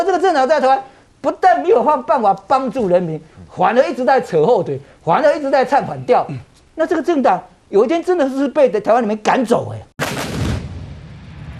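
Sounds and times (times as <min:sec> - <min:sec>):
speech: 0:00.0 - 0:09.9
artillery guns firing: 0:10.0 - 0:11.0.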